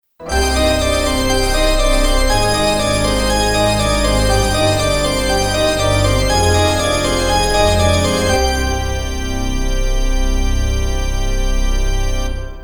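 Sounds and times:
organ music: 0.2 - 12.6.

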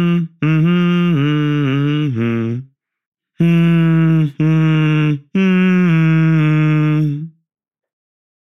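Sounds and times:
person humming a theme: 0.0 - 2.7, 3.4 - 7.4.

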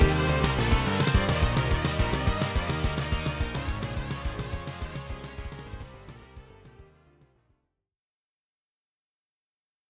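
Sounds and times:
Boss SC-88 synthesizer music: 0.0 - 7.0.

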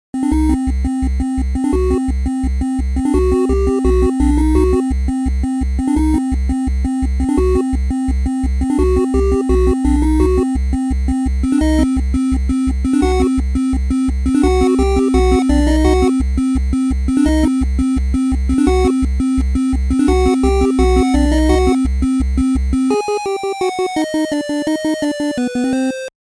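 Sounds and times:
8-bit chiptune: 0.1 - 26.1.

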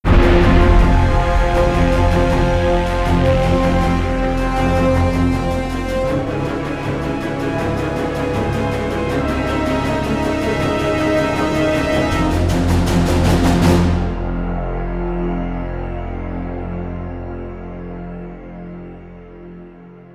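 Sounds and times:
string instrument: 0.0 - 20.1.

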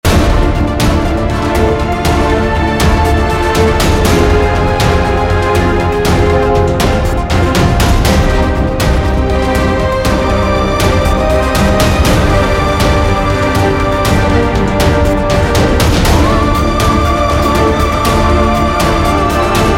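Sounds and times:
action music loop: 0.0 - 19.7.

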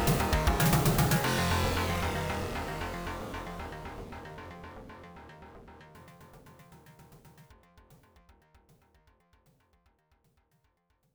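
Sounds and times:
level background music: 0.0 - 7.3.

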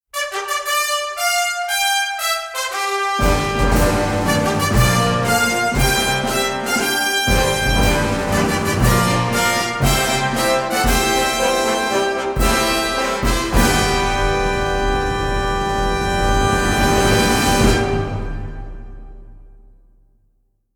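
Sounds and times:
final fanfare: 0.1 - 19.7.

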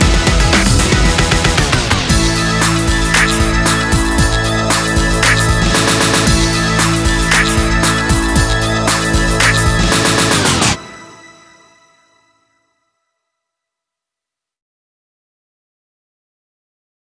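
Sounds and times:
vinyl mix dance music: 0.0 - 12.3.

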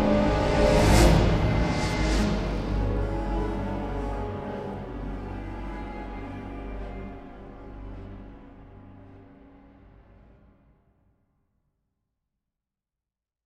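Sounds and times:
ambient symphonic music: 0.0 - 10.6.

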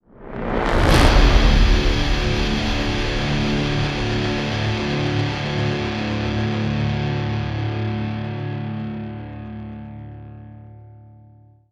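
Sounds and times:
brass swell sting: 0.2 - 7.6.

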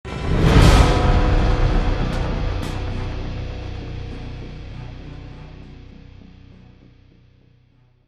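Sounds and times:
drum sting: 0.1 - 6.2.

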